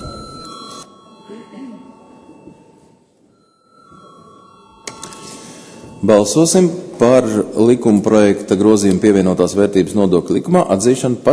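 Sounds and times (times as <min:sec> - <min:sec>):
parliament session electronic bell ringing: 0:00.0 - 0:07.8
speech: 0:06.0 - 0:11.3.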